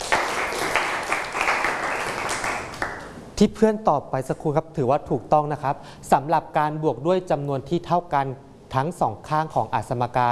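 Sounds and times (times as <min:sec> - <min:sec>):
classroom applause: 0:00.0 - 0:03.2
speech: 0:03.4 - 0:10.2.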